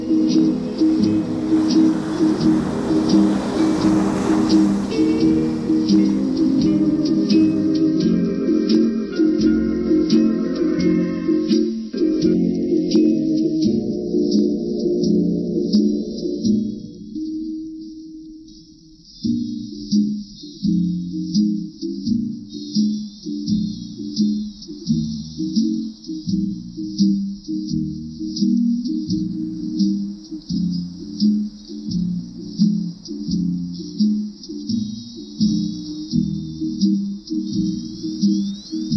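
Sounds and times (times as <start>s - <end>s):
waves: 0.0s - 11.8s, 29.4s - 38.9s
backing track music: 0.0s - 38.9s.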